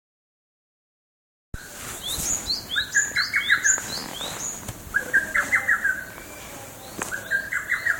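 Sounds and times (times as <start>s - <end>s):
lesser cuckoo song: 1.6s - 7.9s.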